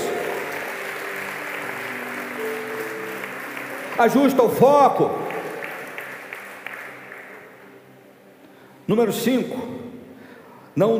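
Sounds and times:
audience applauding: 0:00.0 - 0:07.8
speech: 0:04.0 - 0:05.3, 0:08.9 - 0:09.8, 0:10.8 - 0:10.9.

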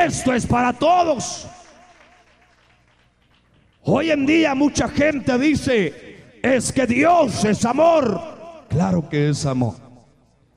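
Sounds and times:
speech: 0:00.0 - 0:01.6, 0:03.8 - 0:09.8
audience applauding: 0:00.9 - 0:04.0.

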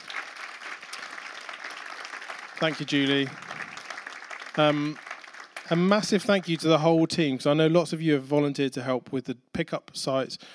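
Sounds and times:
audience applause: 0:00.0 - 0:06.8
speech: 0:02.6 - 0:03.4, 0:04.6 - 0:05.0, 0:05.7 - 0:10.5.

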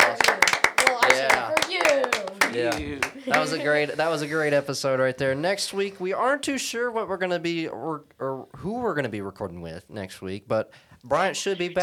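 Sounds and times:
hosts clapping: 0:00.0 - 0:03.8
voices cheering and talking: 0:00.0 - 0:04.8
speech: 0:02.5 - 0:11.8.

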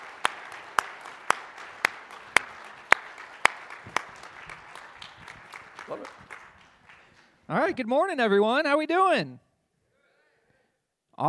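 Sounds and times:
church congregation clapping to welcome campus pastors: 0:00.0 - 0:07.7
speech: 0:07.5 - 0:09.4.

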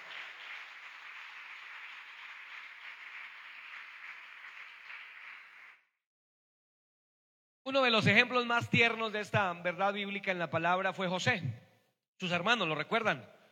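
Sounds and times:
applause: 0:00.0 - 0:05.9
speech: 0:07.7 - 0:11.6, 0:12.2 - 0:13.4.

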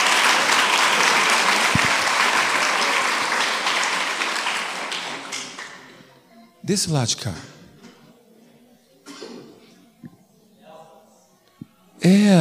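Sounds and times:
audience applause: 0:00.0 - 0:05.9
speech: 0:06.7 - 0:07.6.

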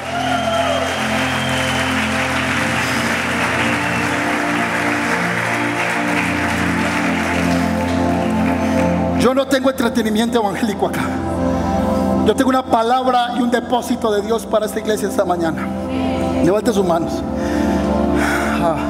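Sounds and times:
audience applauding: 0:00.0 - 0:09.3
speech: 0:09.3 - 0:17.5, 0:18.6 - 0:18.8.

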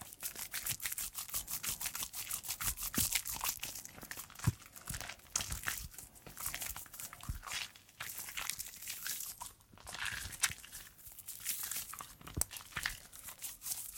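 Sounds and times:
hands rubbing through soapy foam while hand washing: 0:00.0 - 0:13.9.

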